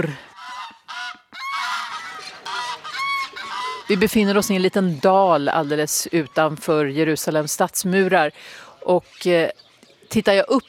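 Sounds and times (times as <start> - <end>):
speech: 0.0 - 0.3, 3.9 - 10.6
geese honking: 0.0 - 7.0.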